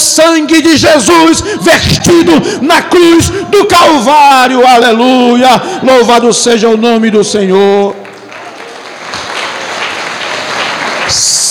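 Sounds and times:
speech: 0:00.2 - 0:08.0
audience applause: 0:07.9 - 0:11.4.

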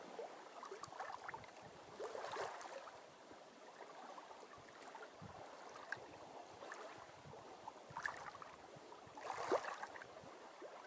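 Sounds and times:
water lapping on a lake in Maine: 0:00.1 - 0:03.0, 0:03.6 - 0:07.1, 0:07.9 - 0:08.6, 0:09.2 - 0:10.8.

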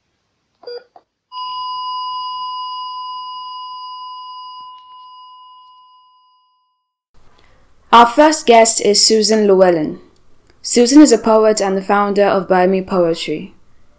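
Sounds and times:
electronic heart monitor beeps: 0:00.6 - 0:06.6
continuous heart monitor flatline tone: 0:00.6 - 0:06.8
speech: 0:07.9 - 0:13.6.

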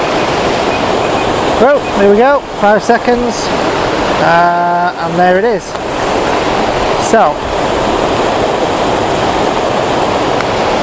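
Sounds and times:
waterfall roaring and throwing off spray: 0:00.0 - 0:10.8
speech: 0:01.6 - 0:05.9, 0:07.1 - 0:07.6.

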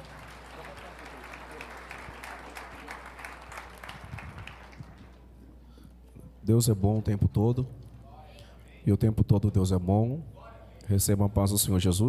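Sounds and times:
audience applause: 0:00.0 - 0:05.2
speech: 0:06.5 - 0:07.8, 0:08.8 - 0:12.0.

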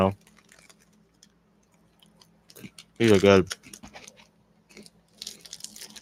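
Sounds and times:
chewing cheesy pizza goldfish crackers: 0:00.0 - 0:06.0
speech: 0:03.0 - 0:03.8.

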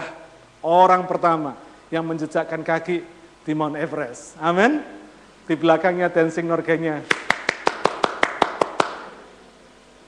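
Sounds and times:
speech: 0:00.6 - 0:07.2
hand clapping: 0:07.0 - 0:09.2.

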